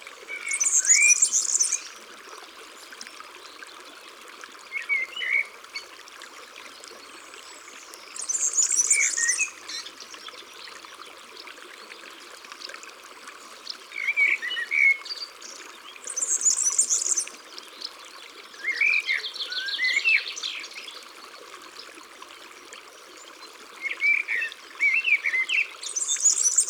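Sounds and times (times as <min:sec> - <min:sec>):
European serin song: 0:00.3 - 0:02.0, 0:06.9 - 0:10.8, 0:13.6 - 0:21.1, 0:23.2 - 0:26.6.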